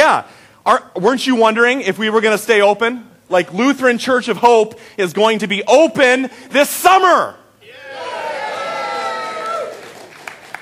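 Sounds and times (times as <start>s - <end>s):
speech: 0.1s - 7.4s
crowd cheering: 7.6s - 10.5s
sharp hand claps: 9.7s - 10.5s.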